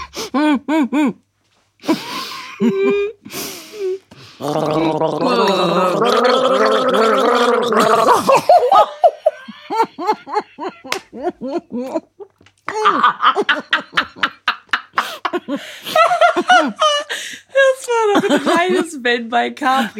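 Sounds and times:
speech: 0:00.5 - 0:01.2, 0:01.8 - 0:12.1, 0:18.5 - 0:19.9
laughter: 0:01.8 - 0:03.3, 0:08.1 - 0:17.1, 0:18.1 - 0:18.9
people gargling a song melody together: 0:04.4 - 0:08.4.

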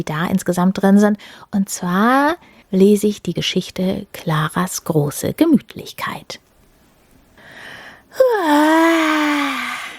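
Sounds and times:
speech: 0:00.0 - 0:06.4, 0:08.2 - 0:09.5
person acting out a bored yawn: 0:08.2 - 0:09.9.

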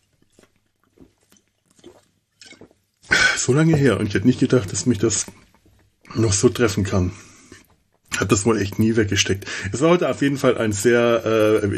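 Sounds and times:
sipping a drink: 0:00.0 - 0:09.7
gulping sounds: 0:00.0 - 0:11.7
speech: 0:03.4 - 0:05.4, 0:06.2 - 0:07.3, 0:08.2 - 0:11.7.

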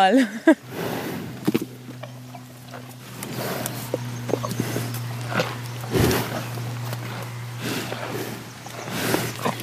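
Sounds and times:
steady low hum: 0:00.0 - 0:09.6
animals snorting while crowding to feed: 0:00.6 - 0:09.6.

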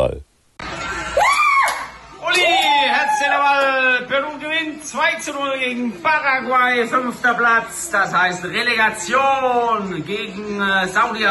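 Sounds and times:
crowd cheering with whoops and shouts: 0:00.6 - 0:05.2
speech: 0:04.8 - 0:11.2.

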